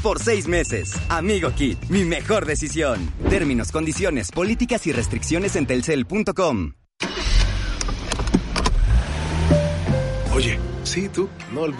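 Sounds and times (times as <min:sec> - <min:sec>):
speech: 0:00.0 - 0:06.8, 0:10.4 - 0:11.7
car engine running: 0:07.5 - 0:10.9.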